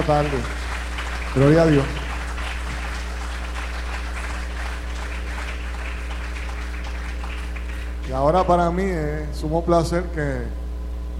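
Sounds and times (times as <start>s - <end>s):
speech: 0.0s - 0.6s, 1.3s - 2.0s, 8.1s - 10.6s
audience applause: 0.0s - 8.6s.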